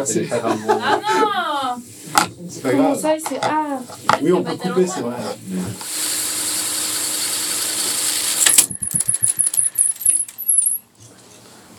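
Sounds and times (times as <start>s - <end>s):
speech: 0.0s - 5.9s
laughter: 0.2s - 1.6s, 4.2s - 5.4s
Revox reel-to-reel tape recorder mechanism whirring: 5.4s - 10.8s
tape recorder mechanical clicks and clunks: 8.3s - 10.8s.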